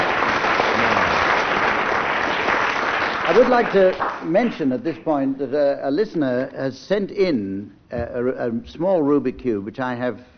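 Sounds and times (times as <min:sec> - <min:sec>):
audience applause: 0:00.0 - 0:04.3
speech: 0:03.3 - 0:10.3.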